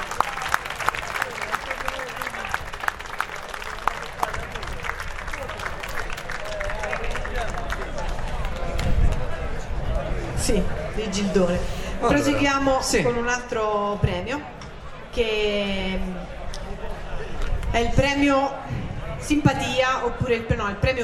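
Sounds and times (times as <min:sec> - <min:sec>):
crowd applauding: 0:00.0 - 0:09.6
murmur of voices: 0:00.0 - 0:21.0
speech: 0:10.5 - 0:14.6, 0:15.2 - 0:16.2, 0:17.8 - 0:18.6, 0:19.3 - 0:21.0.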